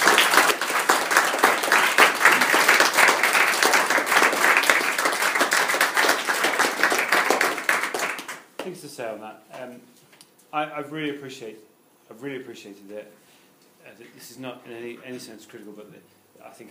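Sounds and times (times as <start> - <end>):
audience giving a big round of applause: 0.0 - 8.5
speech: 9.0 - 13.2, 13.8 - 16.6.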